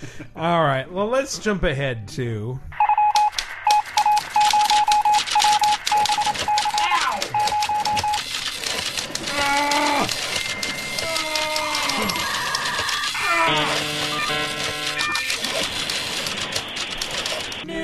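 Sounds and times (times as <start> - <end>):
speech: 0.1 - 2.8
strings of short electronic beeps and tones: 2.8 - 8.2
teletype clatter in a news sound effect: 2.8 - 17.7.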